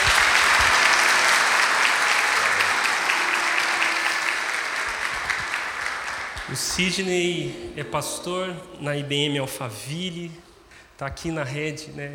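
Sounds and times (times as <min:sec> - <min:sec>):
audience applause: 0:00.0 - 0:06.9
speech: 0:06.5 - 0:10.4, 0:11.0 - 0:12.1.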